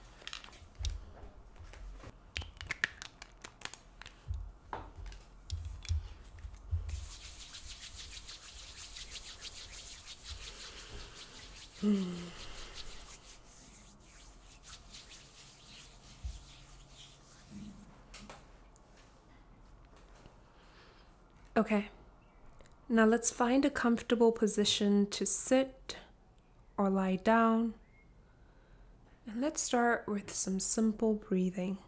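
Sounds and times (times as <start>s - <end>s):
palms rubbed together with essential oil: 0.0s - 17.9s
speech: 11.8s - 12.4s, 21.6s - 22.0s, 22.9s - 26.0s, 26.8s - 27.8s, 29.4s - 31.8s.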